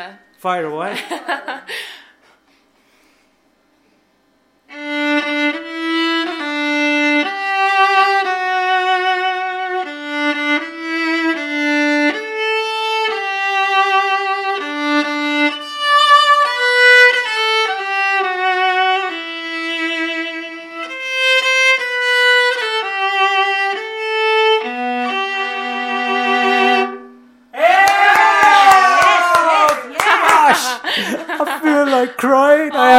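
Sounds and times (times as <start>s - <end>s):
speech: 0.0s - 2.0s
laughter: 0.9s - 1.8s, 28.6s - 32.9s
viola playing a bowed melody: 4.7s - 27.5s.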